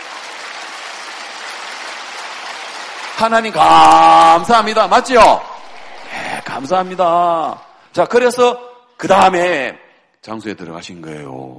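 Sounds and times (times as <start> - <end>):
audience applause: 0.0 - 7.7
speech: 3.2 - 5.5, 6.4 - 11.5.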